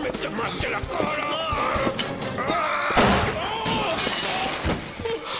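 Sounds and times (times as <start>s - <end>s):
speech: 0.2s - 2.8s
glass shattering: 3.0s - 5.3s.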